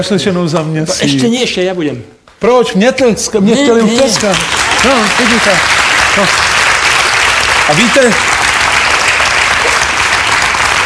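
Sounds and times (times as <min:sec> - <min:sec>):
speech: 0:00.0 - 0:06.6, 0:07.7 - 0:08.4
crowd applause: 0:03.8 - 0:10.8.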